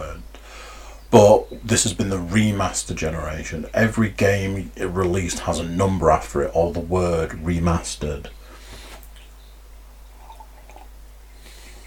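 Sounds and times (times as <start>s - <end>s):
speech: 1.1s - 8.4s
person sipping a drink: 10.0s - 11.8s.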